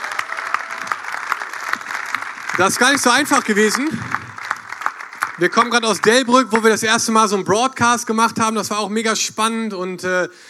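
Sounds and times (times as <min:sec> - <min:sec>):
audience applause: 0:00.0 - 0:06.9
speech: 0:02.6 - 0:04.2, 0:05.4 - 0:10.4.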